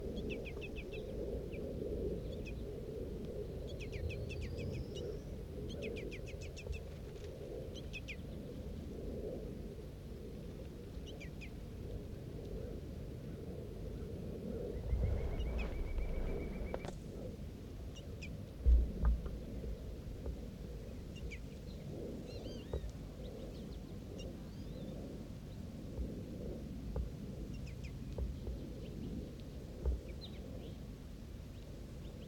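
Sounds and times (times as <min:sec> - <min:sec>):
steady low rumble of noise: 0:00.0 - 0:32.2
birds calling during feeding: 0:14.6 - 0:17.0
sustained whistle: 0:14.7 - 0:16.9.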